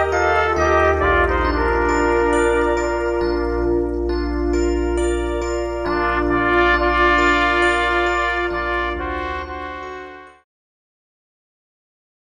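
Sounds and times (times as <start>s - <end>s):
two trumpets playing a hymn: 0.0s - 10.4s.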